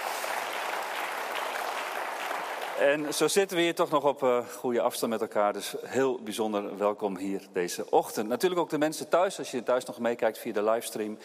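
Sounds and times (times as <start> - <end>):
audience applause: 0.0 - 3.2
speech: 2.8 - 11.2.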